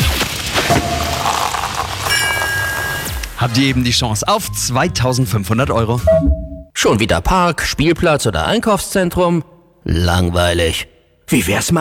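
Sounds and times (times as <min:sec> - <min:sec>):
champagne corks popping: 0:00.6 - 0:03.6
speech: 0:03.4 - 0:11.7.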